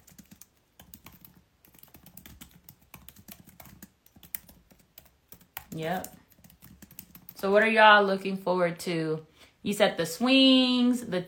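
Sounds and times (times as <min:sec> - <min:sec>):
soft typing on a computer keyboard: 0:00.0 - 0:07.4
speech: 0:05.8 - 0:06.2, 0:07.4 - 0:11.2.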